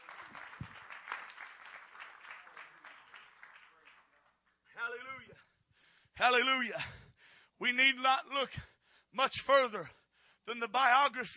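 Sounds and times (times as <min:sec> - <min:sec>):
audience clapping: 0:00.0 - 0:04.9
speech: 0:06.2 - 0:07.0, 0:07.6 - 0:11.3.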